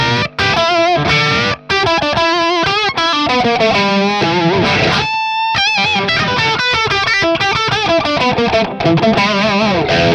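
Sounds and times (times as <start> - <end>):
electric guitar through HX tube screamer overdrive: 0.0 - 10.1.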